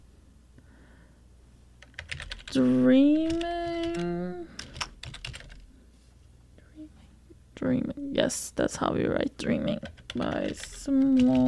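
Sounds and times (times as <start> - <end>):
computer keyboard typing: 1.8 - 5.7, 9.7 - 11.4
speech: 2.5 - 3.5, 7.6 - 11.4.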